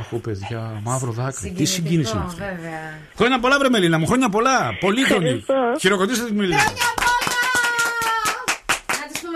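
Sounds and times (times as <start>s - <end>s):
speech: 0.1s - 7.0s
hands clapping: 6.5s - 9.3s.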